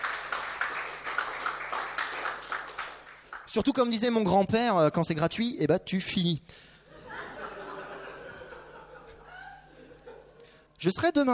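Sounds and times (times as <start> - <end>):
audience applause: 0.0 - 3.5
speech: 3.6 - 6.7, 10.8 - 11.3
laughter: 6.8 - 10.6.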